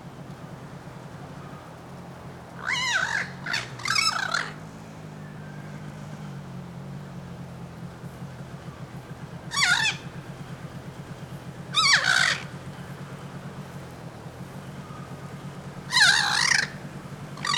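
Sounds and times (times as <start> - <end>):
low pulsing engine-like hum: 0.0 - 17.5
bird squawks: 2.6 - 4.6, 9.4 - 10.5, 11.6 - 12.7, 14.8 - 17.5.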